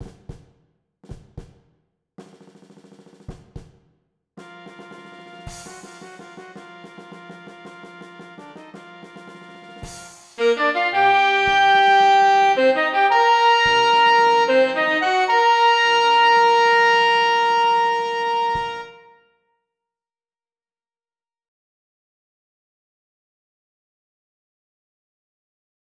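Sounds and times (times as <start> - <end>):
clarinet: 4.4 - 19.3
tenor saxophone: 4.4 - 19.3.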